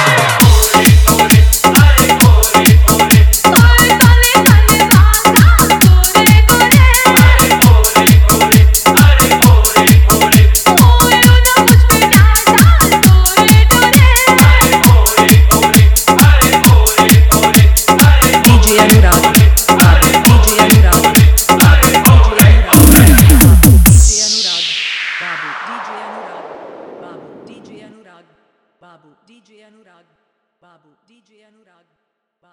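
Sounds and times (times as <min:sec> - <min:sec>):
old Hindi dholak bass mix: 0:00.0 - 0:24.7.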